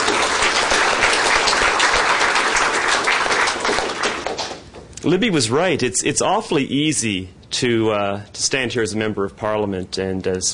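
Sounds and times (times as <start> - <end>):
crowd applauding: 0.0 - 4.7
speech: 5.0 - 10.5.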